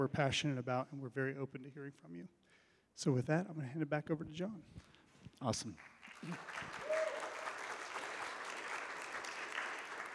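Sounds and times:
speech: 0.0 - 6.8
audience clapping after a presentation: 5.7 - 10.1.

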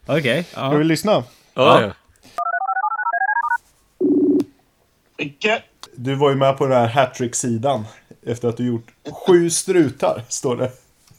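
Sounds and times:
speech: 0.1 - 2.4, 5.2 - 11.1
telephone ringing on an outgoing call: 2.4 - 4.4.

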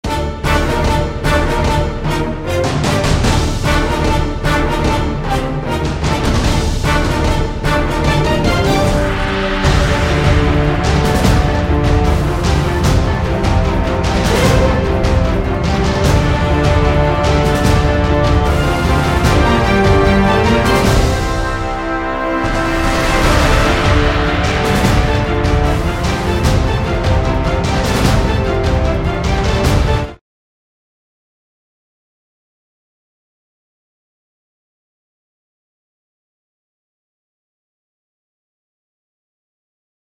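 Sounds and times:
orchestral music: 0.0 - 30.2.

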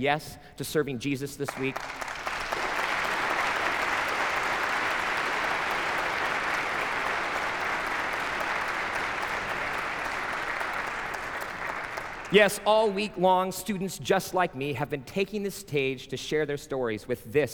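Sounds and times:
speech: 0.0 - 2.2, 12.3 - 17.5
audience applause: 1.5 - 13.0.

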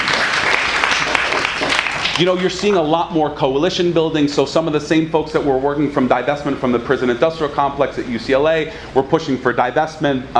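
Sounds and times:
crowd applause: 0.0 - 2.4
speech: 2.2 - 10.3.

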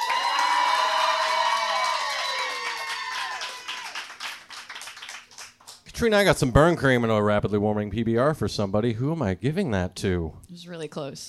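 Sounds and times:
audience cheering and whooping: 0.0 - 4.3
scattered hand clapping: 0.0 - 5.9
speech: 6.0 - 11.2.

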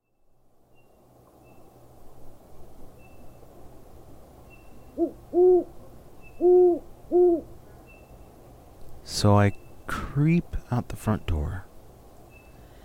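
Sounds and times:
owls hooting at night: 4.9 - 7.5
speech: 9.2 - 9.6, 10.2 - 11.7.

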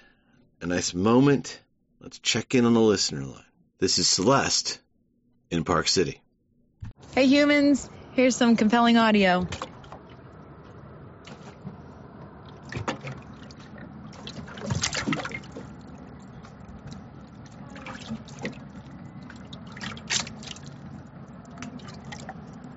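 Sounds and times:
speech: 0.6 - 4.8, 5.5 - 6.2, 7.2 - 9.7
water lapping against a pontoon boat on a lake: 9.2 - 22.7.

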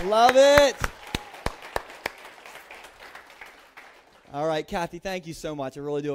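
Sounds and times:
speech: 0.0 - 0.9, 4.3 - 6.1
audience applause: 0.0 - 4.4.

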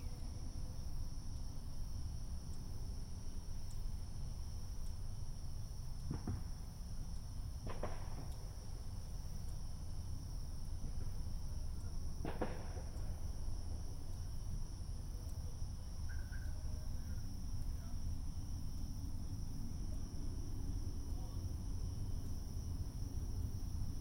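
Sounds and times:
high insect buzzing: 0.0 - 23.9
neighborhood fireworks on the Fourth of July: 12.2 - 12.9.

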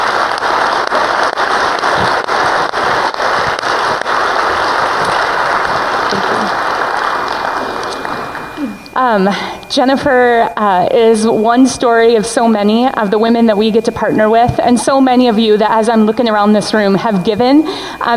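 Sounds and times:
audience applause: 0.0 - 8.8
speech: 9.1 - 18.1.

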